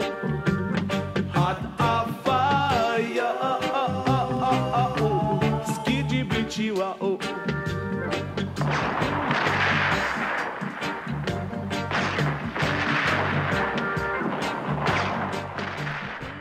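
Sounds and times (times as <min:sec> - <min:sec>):
reggae song with bass and harmonic instruments: 0:00.0 - 0:16.3
speech: 0:01.5 - 0:01.9
gunshot sound effects in a reggae song: 0:08.6 - 0:16.3.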